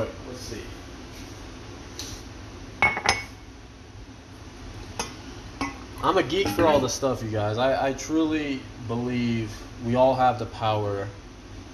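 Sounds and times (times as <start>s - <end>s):
speech: 0.4s - 0.8s, 6.0s - 11.2s
clinks against glass as a supplement is added to water: 2.8s - 3.4s.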